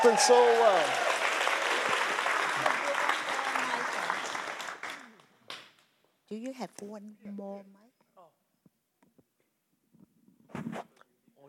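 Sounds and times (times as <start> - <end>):
speech: 0.0 - 1.1, 6.3 - 7.8
audience applause: 0.0 - 5.2.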